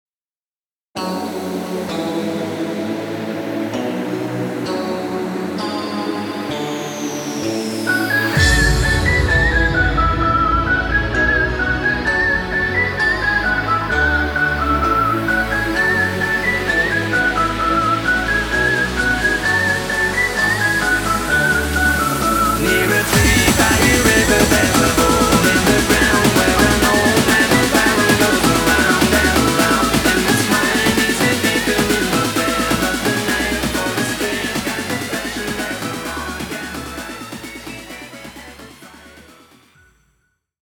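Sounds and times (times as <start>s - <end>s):
intro outro music: 1.0s - 39.8s.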